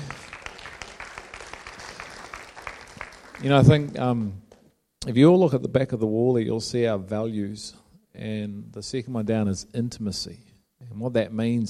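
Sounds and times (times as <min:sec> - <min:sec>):
audience clapping: 0:00.0 - 0:04.7
speech: 0:03.4 - 0:04.4, 0:05.0 - 0:11.6.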